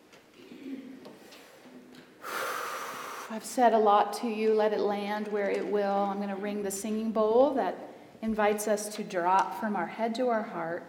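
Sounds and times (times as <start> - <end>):
deep breath during a guided meditation: 0.4 - 3.4
speech: 3.3 - 10.8.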